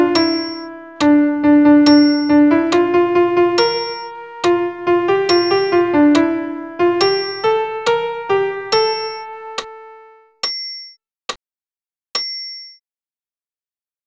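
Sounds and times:
solo piano piece: 0:00.0 - 0:10.3.

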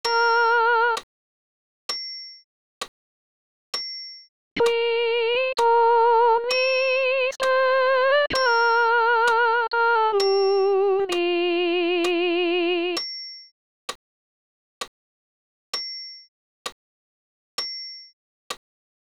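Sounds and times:
solo soprano singing: 0:00.0 - 0:01.0, 0:04.6 - 0:13.0.

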